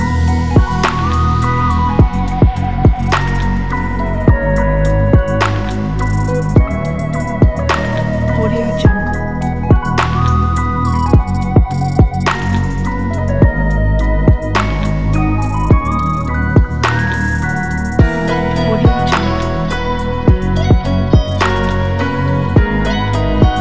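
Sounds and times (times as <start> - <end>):
warm night music: 0.0 - 23.5.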